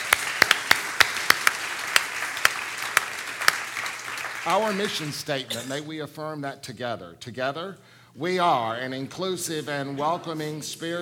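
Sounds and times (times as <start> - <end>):
audience applause: 0.0 - 5.5
speech: 4.4 - 10.9.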